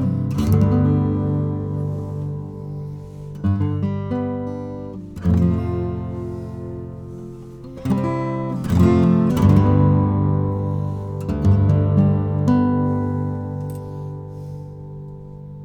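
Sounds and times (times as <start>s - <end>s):
Martin 000-18 acoustic guitar played with a flat pick: 0.0s - 15.6s.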